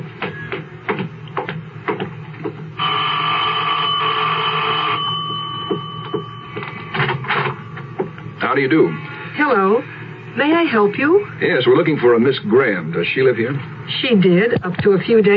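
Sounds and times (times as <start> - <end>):
clattering knocks and shuffles: 0.1 - 2.8, 5.2 - 8.4
electric doorbell ringing: 2.8 - 8.2
speech: 8.6 - 15.3.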